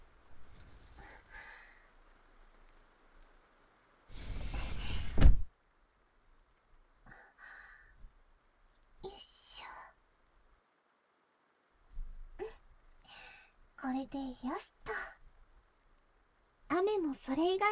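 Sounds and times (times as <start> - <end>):
faint soft rustles: 0.2 - 1.0, 4.1 - 5.5
window sliding shut: 4.1 - 5.5
speech: 13.9 - 15.0, 17.0 - 17.7.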